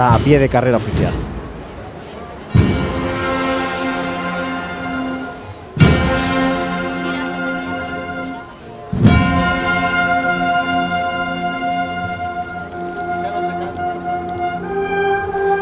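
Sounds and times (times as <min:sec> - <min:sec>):
speech: 0:00.0 - 0:01.3
steady drumming: 0:02.6 - 0:09.2
processional brass band playing a march: 0:02.6 - 0:15.6.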